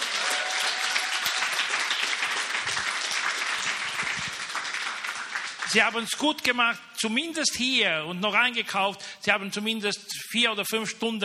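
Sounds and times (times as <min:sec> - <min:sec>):
audience applause: 0:00.0 - 0:05.8
speech: 0:05.7 - 0:11.2.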